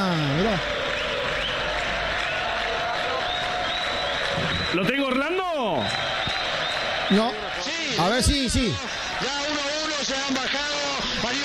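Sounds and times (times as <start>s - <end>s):
stadium crowd applause: 0.0s - 11.4s
speech: 0.5s - 0.8s, 4.7s - 6.2s, 7.1s - 11.4s.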